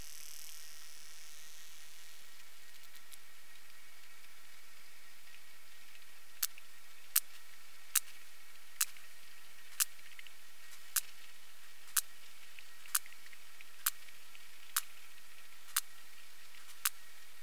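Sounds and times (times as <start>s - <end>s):
Physeter macrocephalus sperm whale clicks: 6.4s - 17.1s.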